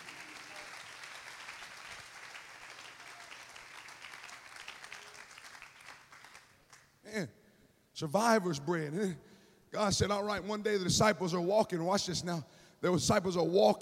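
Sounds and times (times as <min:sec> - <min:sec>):
audience clapping hands: 0:00.0 - 0:07.0
speech: 0:07.1 - 0:07.4, 0:08.0 - 0:13.8.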